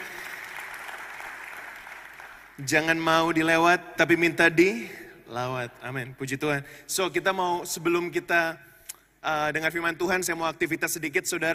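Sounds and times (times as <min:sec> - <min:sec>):
audience applause: 0:00.0 - 0:02.6
speech: 0:02.6 - 0:11.5.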